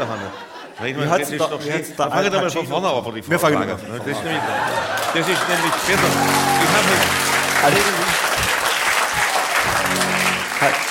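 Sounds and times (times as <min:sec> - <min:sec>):
laughter: 0:00.0 - 0:01.9, 0:03.8 - 0:10.8
speech: 0:00.0 - 0:08.0, 0:10.6 - 0:10.8
audience applause: 0:04.3 - 0:10.8.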